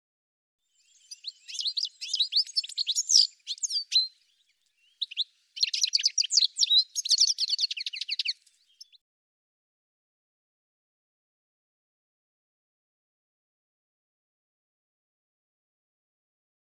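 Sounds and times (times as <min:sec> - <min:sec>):
bird chirping song: 0:00.6 - 0:09.0.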